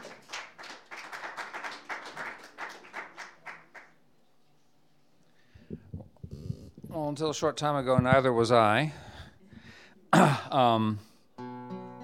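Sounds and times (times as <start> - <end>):
audience applauding to welcome a solo performer at a live music evening: 0.0 - 3.9
speech: 7.0 - 9.0, 10.5 - 11.1.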